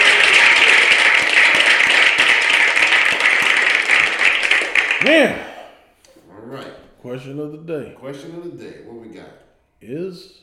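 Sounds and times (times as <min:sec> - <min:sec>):
applause from many hands clapping: 0:00.0 - 0:05.4
speech: 0:05.0 - 0:05.4, 0:07.2 - 0:10.4.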